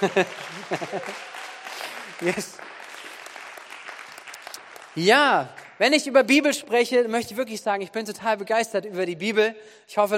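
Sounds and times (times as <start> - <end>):
laughter: 0.0 - 2.6
speech: 0.0 - 2.7, 5.0 - 10.1
audience applauding: 0.0 - 6.1.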